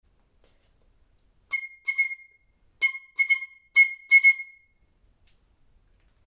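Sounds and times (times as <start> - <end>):
piccolo: 1.5 - 4.8.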